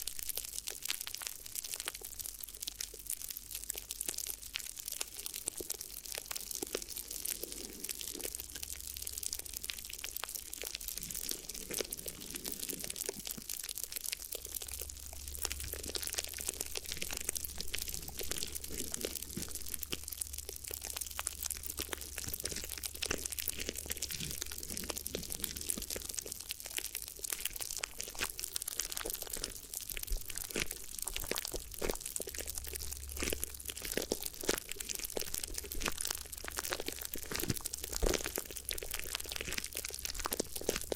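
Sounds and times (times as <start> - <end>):
crinkly crackling and crunching of ear massage: 0.0 - 40.9.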